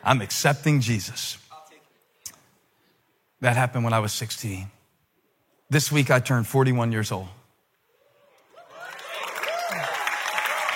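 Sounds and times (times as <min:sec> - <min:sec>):
speech: 0:00.0 - 0:01.4, 0:03.4 - 0:04.8, 0:05.7 - 0:07.4
audience applause: 0:08.7 - 0:10.7.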